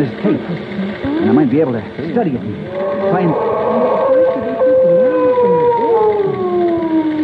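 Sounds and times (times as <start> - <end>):
speech: 0.0 - 4.0
creature howling and wailing: 2.6 - 7.2.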